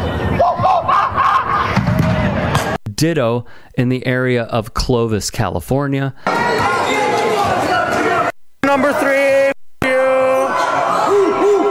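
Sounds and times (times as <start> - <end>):
crowd shouting in a high school gymnasium: 0.0 - 2.8, 6.2 - 11.6
speech: 3.0 - 7.0, 8.7 - 9.4.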